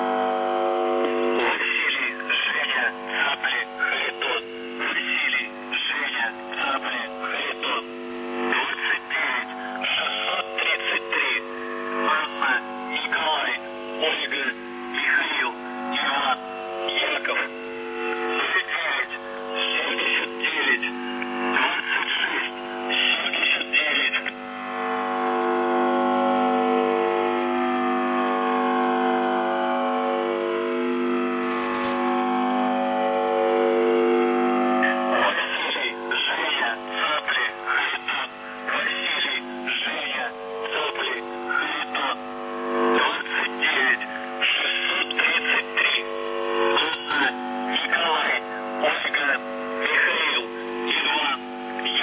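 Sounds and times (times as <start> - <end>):
USB message buzzer: 0.0 - 52.0.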